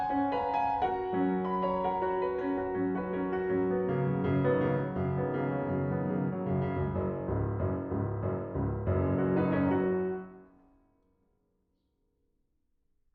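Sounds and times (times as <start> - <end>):
prelude in D major, andante serioso: 0.0 - 10.4.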